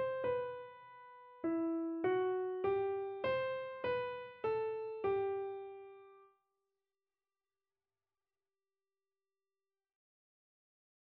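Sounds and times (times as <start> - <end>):
keyboard: 0.0 - 6.2.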